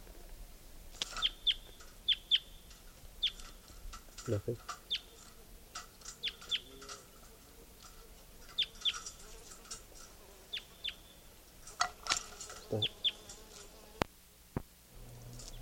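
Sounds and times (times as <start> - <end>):
soft hiss: 0.0 - 15.6
bird chirps: 1.1 - 3.7, 4.3 - 6.9, 8.4 - 9.3, 10.5 - 11.3, 12.6 - 13.3
speech: 4.3 - 4.8.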